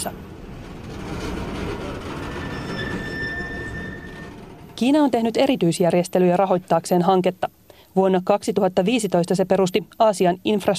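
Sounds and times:
speech: 0.0s - 0.2s, 4.8s - 10.7s
freight train wheel squeals: 0.0s - 6.3s
freight train rumbling on rails: 0.0s - 7.6s.

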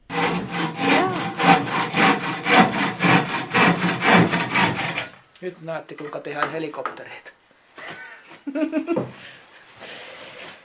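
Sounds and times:
hand saw sawing through wood: 0.0s - 5.2s
speech: 5.4s - 7.3s, 8.4s - 9.4s.

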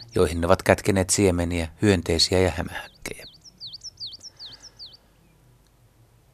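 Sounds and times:
coal tit song: 0.0s - 6.3s
faint low hum: 0.0s - 6.3s
speech: 0.2s - 3.3s.

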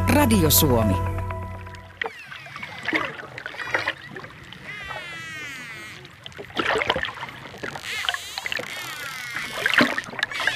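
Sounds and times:
speech: 0.2s - 1.2s
dolphin vocalizations: 1.9s - 6.6s, 7.5s - 10.5s.

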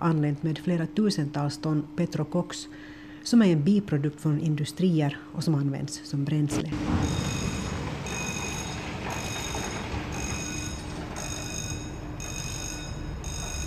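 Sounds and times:
speech: 0.0s - 7.3s
low mechanical rumble and rattle of machinery moving: 6.5s - 13.6s
crane warning bell ringing while moving: 6.7s - 13.6s.

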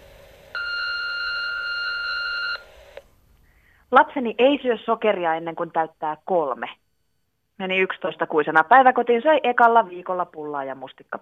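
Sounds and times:
faint hiss: 0.0s - 9.1s
answering machine beep: 0.6s - 2.7s
speech: 3.9s - 6.8s, 7.6s - 11.2s.

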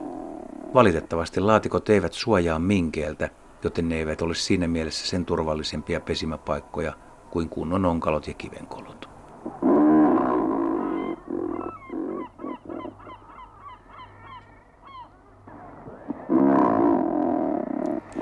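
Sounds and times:
razorbill call: 0.0s - 0.9s, 9.4s - 18.2s
speech: 0.7s - 9.6s.

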